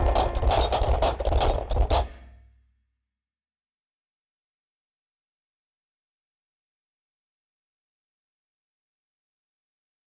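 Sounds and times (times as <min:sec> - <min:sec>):
pianoforte: 0:00.0 - 0:02.4
prepared drum kit: 0:00.0 - 0:02.4.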